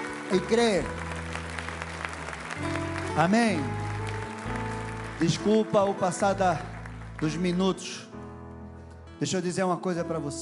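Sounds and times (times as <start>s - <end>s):
audience applause: 0.0s - 7.8s
speech: 0.3s - 1.1s, 2.6s - 3.8s, 5.2s - 8.1s, 9.2s - 10.4s.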